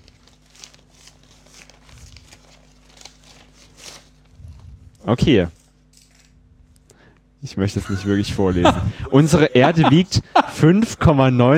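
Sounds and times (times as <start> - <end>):
paper envelope being torn open: 0.0 - 6.4
speech: 5.0 - 5.6, 7.5 - 11.5
laughter: 7.6 - 11.4.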